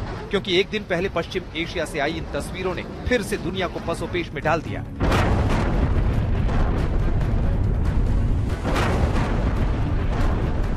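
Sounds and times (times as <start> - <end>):
speech: 0.3 - 5.0
missile and drone explosions with deep rumbling roar and crackling: 5.0 - 10.7.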